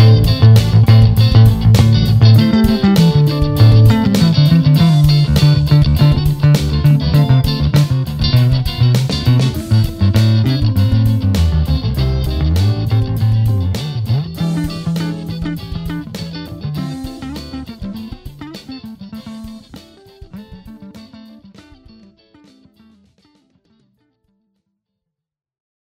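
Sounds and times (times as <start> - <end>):
funk bass solo: 0.0 - 22.0.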